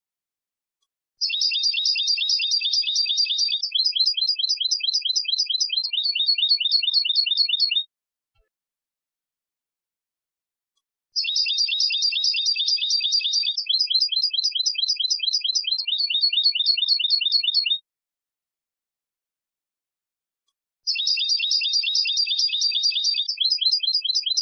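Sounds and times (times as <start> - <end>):
European goldfinch twittering: 1.2 - 7.8, 11.2 - 17.8, 20.9 - 24.3.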